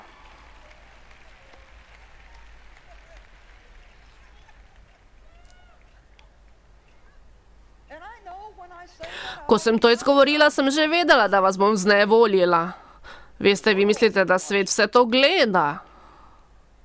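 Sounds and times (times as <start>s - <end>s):
audience clapping: 0.0s - 6.6s
crowd murmur: 0.0s - 7.5s
speech: 8.5s - 12.8s, 13.4s - 15.9s.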